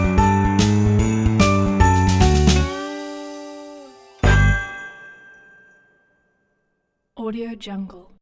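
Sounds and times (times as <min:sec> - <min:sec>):
joyful Christmas ident jingle: 0:00.0 - 0:06.3.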